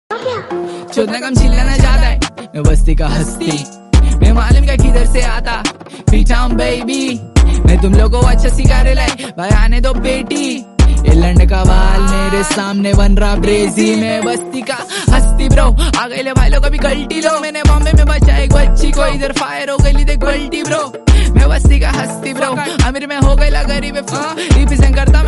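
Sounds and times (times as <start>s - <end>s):
rap song ringtone: 0.4s - 25.2s.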